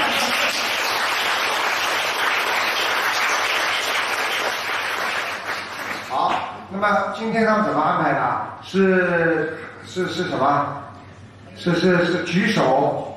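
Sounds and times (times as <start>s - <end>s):
audience applause: 0.0s - 6.3s
speech: 6.8s - 10.8s, 11.6s - 13.1s.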